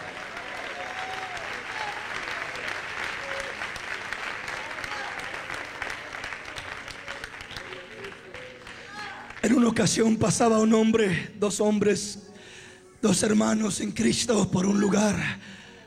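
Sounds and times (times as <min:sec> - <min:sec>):
audience clapping: 0:00.0 - 0:09.8
speech: 0:09.6 - 0:12.3, 0:13.0 - 0:15.6.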